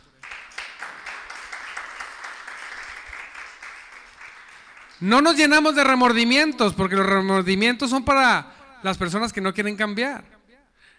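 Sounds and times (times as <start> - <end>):
audience applause: 0.0 - 5.1
speech: 5.0 - 10.4.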